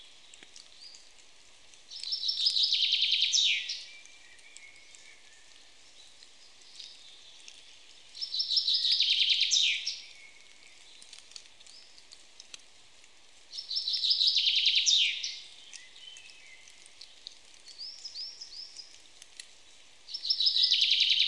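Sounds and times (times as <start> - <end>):
Common chaffinch Fringilla coelebs singing cascading phrases: 1.8 - 12.1, 13.5 - 19.0, 19.7 - 21.2.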